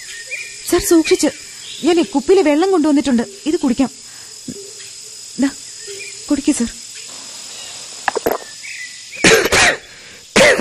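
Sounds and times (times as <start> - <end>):
speech: 0.7 - 4.6, 5.4 - 5.6, 6.3 - 6.8
man coughing: 9.2 - 10.5.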